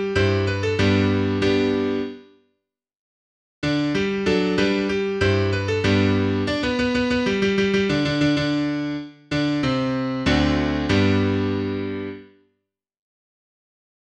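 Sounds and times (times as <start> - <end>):
piano piece: 0.0 - 2.4, 3.6 - 12.4.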